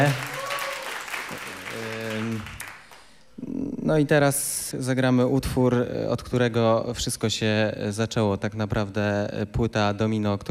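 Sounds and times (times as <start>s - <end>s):
speech: 0.0s - 0.3s, 3.9s - 10.4s
audience applause: 0.0s - 3.2s.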